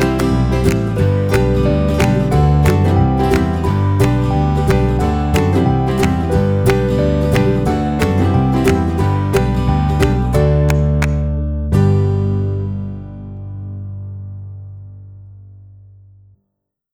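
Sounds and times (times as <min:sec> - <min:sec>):
clapping: 0:00.0 - 0:11.3
ukulele: 0:00.0 - 0:13.3.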